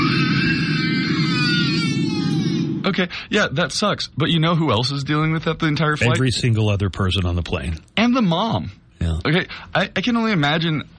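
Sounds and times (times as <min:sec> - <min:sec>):
baby crying on a flight: 0:00.0 - 0:02.8
speech: 0:02.9 - 0:10.9.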